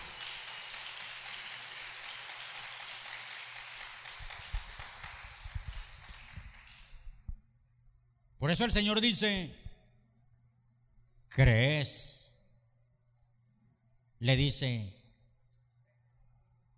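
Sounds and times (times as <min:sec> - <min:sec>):
audience applauding: 0:00.0 - 0:07.0
speech: 0:08.4 - 0:09.7, 0:11.4 - 0:12.2, 0:14.2 - 0:15.0.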